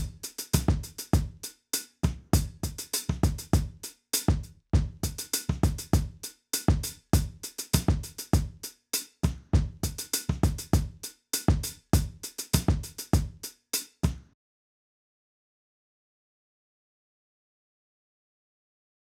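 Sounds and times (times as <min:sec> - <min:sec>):
drums: 0:00.0 - 0:14.4.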